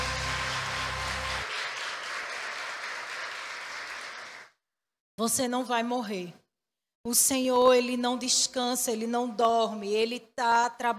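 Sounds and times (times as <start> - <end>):
audience applause: 0.0 - 4.6
speech: 5.2 - 6.4, 7.0 - 10.9.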